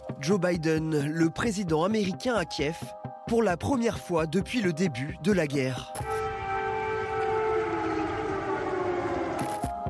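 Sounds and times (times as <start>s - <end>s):
speech: 0.3s - 6.1s
air raid siren in Kyiv: 6.0s - 9.8s.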